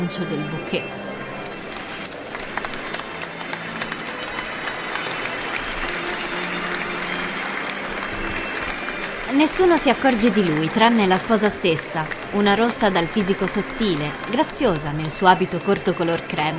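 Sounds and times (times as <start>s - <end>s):
speech: 0.1s - 1.1s, 9.3s - 16.5s
wedding guests applauding: 0.8s - 16.5s.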